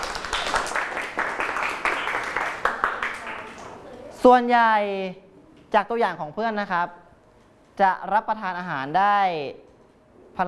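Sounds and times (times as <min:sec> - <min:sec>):
group applause: 0:00.0 - 0:03.8
speech: 0:04.2 - 0:07.0, 0:07.8 - 0:09.6.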